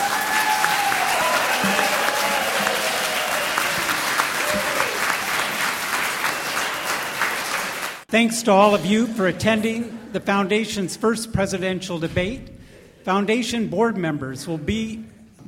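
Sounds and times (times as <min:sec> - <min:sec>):
faint voices and cheers: 0:00.0 - 0:05.6
audience applause: 0:00.0 - 0:08.1
speech: 0:08.1 - 0:15.1.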